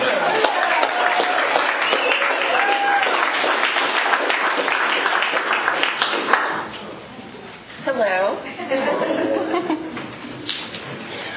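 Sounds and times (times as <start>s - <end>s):
audience at a recovery meeting clapping: 0.0s - 6.9s
laughter: 8.4s - 10.4s.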